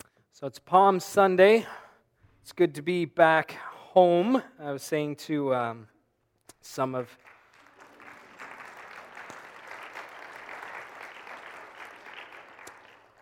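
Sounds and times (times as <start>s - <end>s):
speech: 0.4s - 1.8s, 2.4s - 5.9s, 6.6s - 7.3s
church congregation clapping on Palm Sunday: 6.8s - 13.2s.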